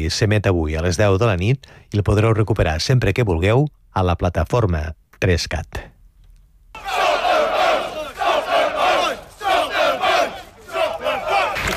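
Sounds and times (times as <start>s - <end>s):
speech: 0.0s - 5.9s
protesters chanting a slogan: 6.8s - 11.7s.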